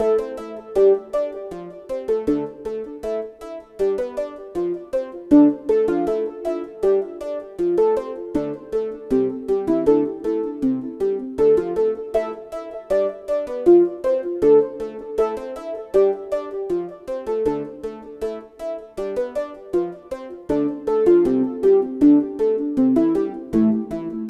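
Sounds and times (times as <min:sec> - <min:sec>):
digital introspective emotional music: 0:00.0 - 0:24.2.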